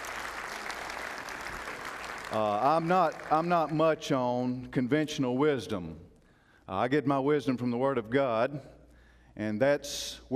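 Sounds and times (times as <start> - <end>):
audience clapping: 0.0 - 4.1
speech: 2.3 - 6.0, 6.7 - 8.8, 9.4 - 10.3.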